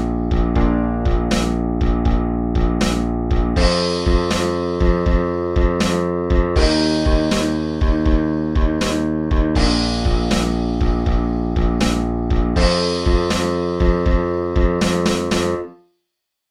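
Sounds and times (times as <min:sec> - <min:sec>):
12-bar blues in B-flat: 0:00.0 - 0:15.7.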